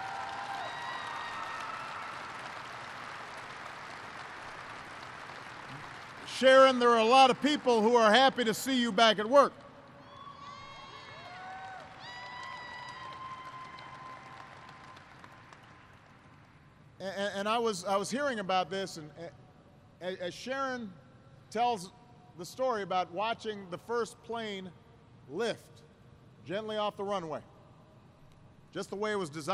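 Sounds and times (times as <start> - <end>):
audience applause: 0.0 - 8.8, 10.9 - 16.3
speech: 6.4 - 9.6, 17.7 - 19.4, 20.0 - 25.8, 26.4 - 27.5, 28.7 - 29.5.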